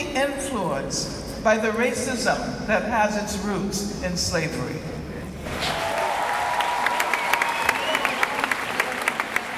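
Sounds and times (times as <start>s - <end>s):
speech: 0.2s - 4.9s
thunderous applause from an audience in Uruguay: 5.4s - 9.5s.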